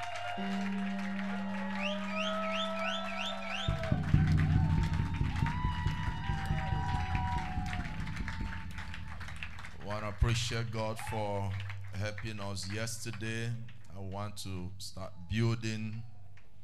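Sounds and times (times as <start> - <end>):
audience clapping: 0.0 - 14.5
speech: 0.4 - 0.9, 10.2 - 16.1
low sustained tone: 3.6 - 12.0.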